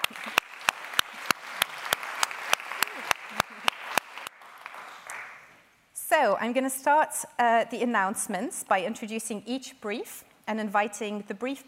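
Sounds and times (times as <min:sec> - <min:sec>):
audience applause: 0:00.0 - 0:05.5
sharp evenly spaced claps: 0:00.0 - 0:05.5
speech: 0:06.2 - 0:11.6.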